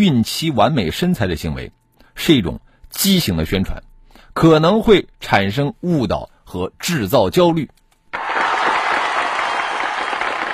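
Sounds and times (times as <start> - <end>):
speech: 0.0 - 7.8
applause: 8.1 - 10.5.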